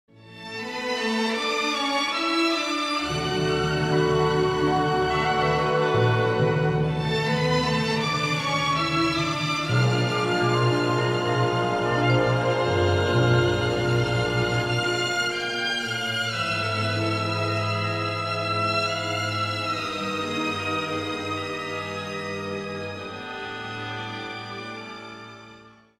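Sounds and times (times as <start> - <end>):
gentle airy classical melody: 0.1 - 25.9.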